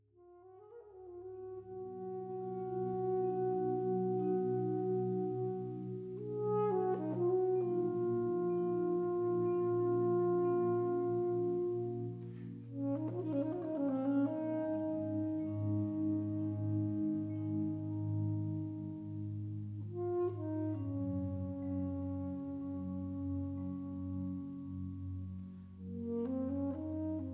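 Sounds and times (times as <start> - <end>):
saxophone: 0.2 - 27.3.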